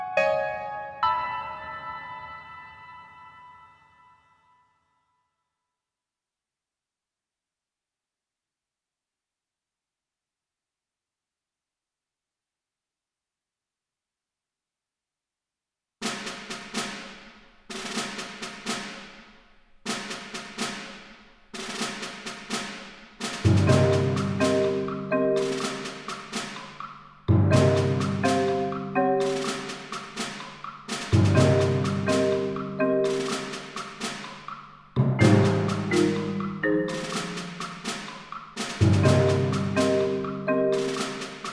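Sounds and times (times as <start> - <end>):
background music: 0.0 - 4.7, 21.6 - 41.5.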